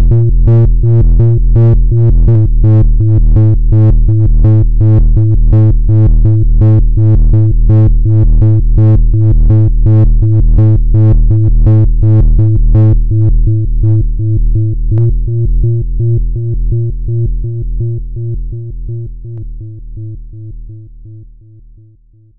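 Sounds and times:
trance bass noise: 0:00.0 - 0:21.6.

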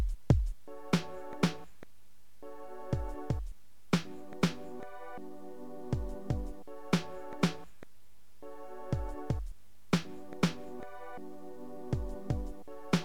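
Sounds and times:
music beat: 0:00.0 - 0:01.8, 0:02.9 - 0:05.0, 0:06.0 - 0:07.8, 0:08.9 - 0:11.2, 0:11.9 - 0:13.0.

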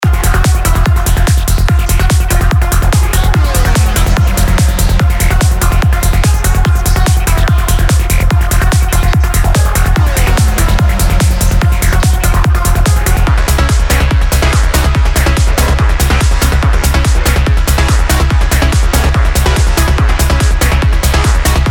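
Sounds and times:
psychedelic trance music: 0:00.0 - 0:21.6.

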